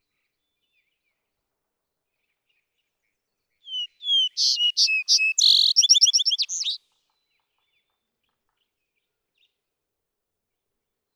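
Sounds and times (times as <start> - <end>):
vesper sparrow song: 3.7 - 6.8.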